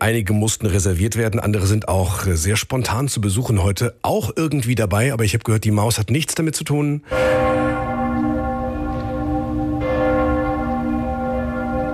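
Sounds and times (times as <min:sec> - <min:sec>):
speech: 0:00.0 - 0:07.8
church bells of Cologne Cathedral ringing: 0:07.1 - 0:11.9.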